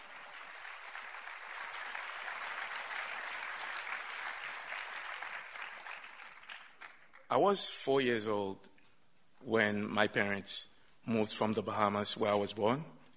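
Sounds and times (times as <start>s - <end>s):
audience applause welcoming a storyteller to the stage: 0.0s - 7.3s
speech: 7.3s - 8.7s, 9.4s - 13.0s.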